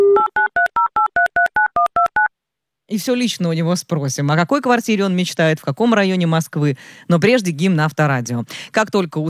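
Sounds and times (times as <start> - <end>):
telephone keypad tones of a call being placed: 0.1 - 2.3
speech: 2.9 - 9.2.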